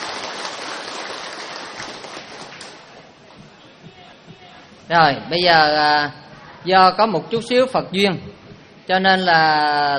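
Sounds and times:
audience round of applause: 0.0s - 3.0s
speech: 4.9s - 8.3s, 8.9s - 9.9s.

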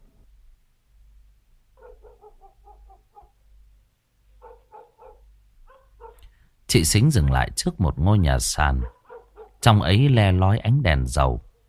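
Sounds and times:
dogs barking: 1.8s - 3.4s, 4.4s - 6.3s, 8.8s - 9.6s
speech: 6.7s - 9.0s, 9.6s - 11.5s.

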